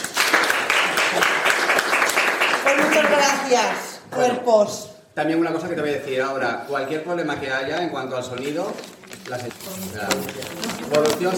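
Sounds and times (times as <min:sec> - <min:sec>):
audience applause: 0:00.0 - 0:03.5
speech: 0:03.2 - 0:11.3.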